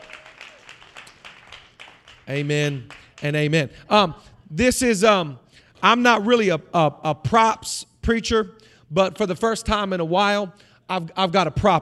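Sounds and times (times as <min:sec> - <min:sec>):
audience clapping: 0:00.0 - 0:03.6
speech: 0:02.3 - 0:11.8.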